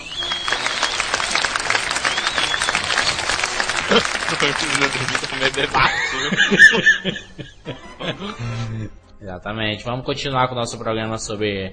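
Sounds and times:
faint whistle-like tone: 0.0s - 1.1s
round of applause: 0.0s - 6.4s
laughter: 0.0s - 8.9s
speech: 4.0s - 11.7s.

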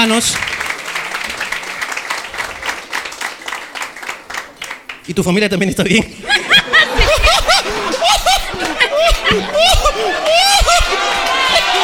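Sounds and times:
speech: 0.0s - 0.6s, 5.1s - 6.3s, 7.8s - 11.7s
applause from a group: 0.0s - 5.1s, 9.8s - 11.8s
laughter: 6.1s - 11.8s.

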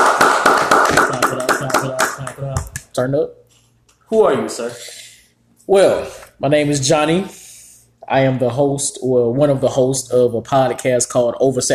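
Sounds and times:
hand clapping: 0.0s - 3.0s
speech: 3.0s - 3.4s, 4.1s - 5.0s, 5.7s - 7.4s, 8.0s - 11.7s.

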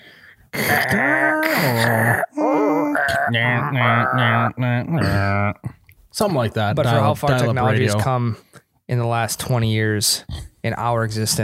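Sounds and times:
voice imitating dial-up internet modem connecting: 0.6s - 5.5s
speech: 3.3s - 11.4s.

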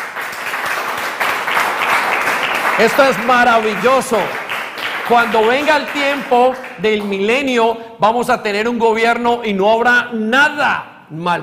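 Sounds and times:
applause: 0.0s - 7.4s
speech: 2.8s - 4.4s, 5.1s - 11.4s.

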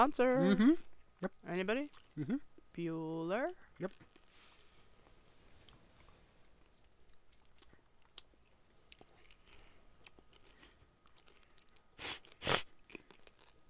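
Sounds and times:
speech: 0.0s - 4.2s
loud sniffing from a cold: 12.0s - 12.7s.

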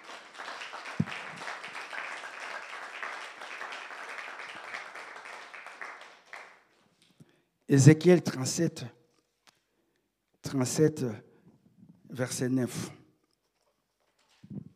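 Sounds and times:
church congregation clapping during a service: 0.0s - 7.2s
speech: 7.7s - 9.0s, 10.5s - 11.3s, 12.1s - 13.0s.

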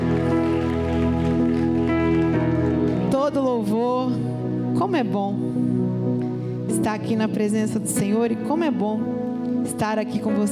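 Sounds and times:
audience applause: 0.0s - 3.1s
speech: 3.4s - 10.5s.

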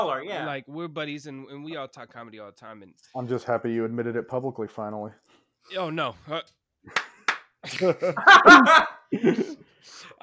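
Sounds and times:
speech: 0.0s - 10.2s
hand clap marking an edit point: 6.9s - 7.9s
laughter: 7.6s - 9.6s.

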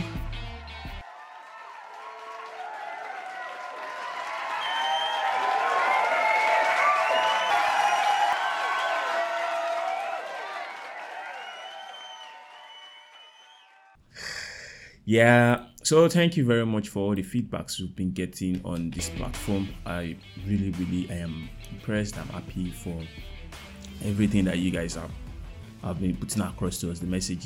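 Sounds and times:
applause: 1.0s - 14.0s
speech: 15.1s - 25.2s, 25.8s - 27.4s.

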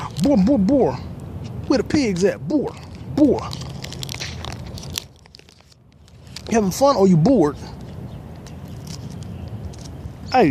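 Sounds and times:
speech: 0.2s - 1.1s, 1.7s - 3.6s, 6.5s - 7.7s
protein bar plastic wrapper being torn open: 3.4s - 6.5s.

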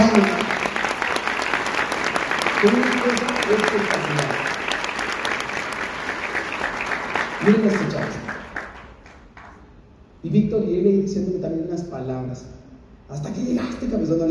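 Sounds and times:
audience applause: 0.0s - 9.6s
speech: 7.4s - 7.9s, 10.3s - 14.2s.

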